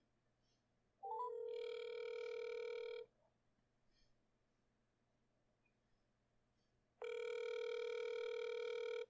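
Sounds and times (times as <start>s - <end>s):
ringback tones from an outgoing phone call: 1.0s - 3.0s, 7.0s - 9.0s.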